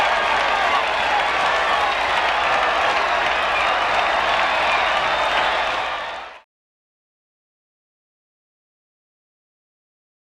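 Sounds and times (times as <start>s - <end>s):
huge crowd applauding: 0.0s - 6.4s.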